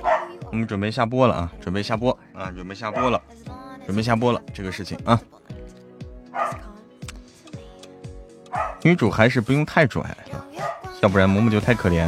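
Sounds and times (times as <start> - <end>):
dog barking: 0.0 - 0.4, 2.9 - 3.2, 6.3 - 6.6, 8.5 - 8.8, 10.6 - 10.9
speech: 0.5 - 5.4, 8.8 - 10.4, 11.0 - 12.0.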